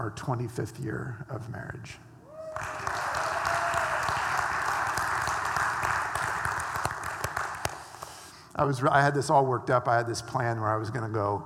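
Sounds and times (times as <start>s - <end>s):
speech: 0.0s - 2.9s, 8.6s - 11.4s
audience clapping: 2.4s - 8.3s.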